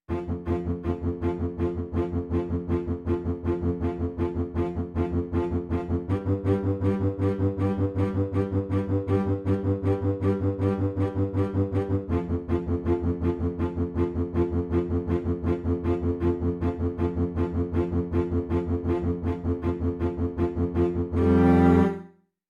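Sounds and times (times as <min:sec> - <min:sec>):
fast orchestral background music: 0:00.1 - 0:22.1.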